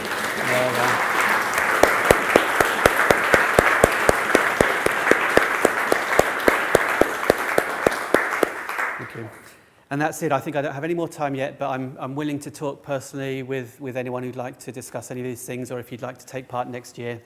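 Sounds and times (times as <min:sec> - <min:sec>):
audience clapping for mentors: 0:00.0 - 0:09.3
speech: 0:09.9 - 0:17.2.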